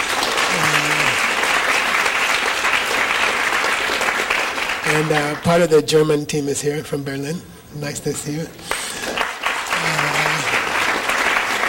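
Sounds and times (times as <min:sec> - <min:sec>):
event audience applause welcoming a visiting team from Moscow: 0:00.0 - 0:05.5, 0:08.6 - 0:11.6
speech: 0:04.9 - 0:08.8.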